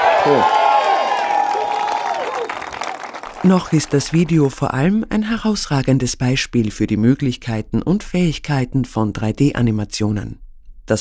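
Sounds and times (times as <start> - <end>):
crowd cheering: 0.0 - 4.3
speech: 0.2 - 0.6, 3.4 - 10.9.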